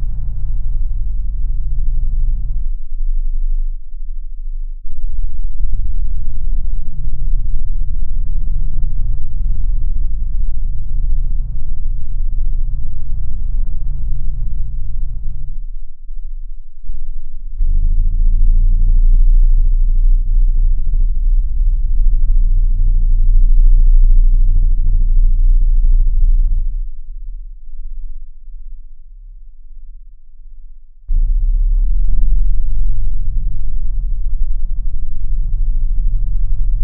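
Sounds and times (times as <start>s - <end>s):
10 Hz to 30 Hz low frequency tone: 0.0s - 36.8s.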